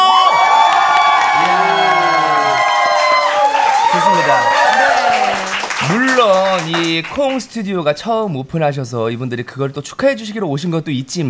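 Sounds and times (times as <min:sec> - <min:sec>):
audience cheering and shouting: 0:00.0 - 0:06.4
speech: 0:06.6 - 0:11.2.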